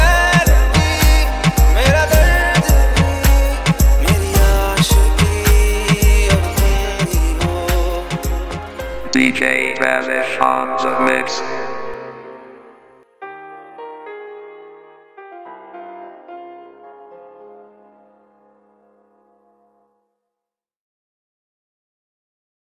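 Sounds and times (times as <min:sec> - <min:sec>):
moombahton dance music: 0:00.0 - 0:12.6.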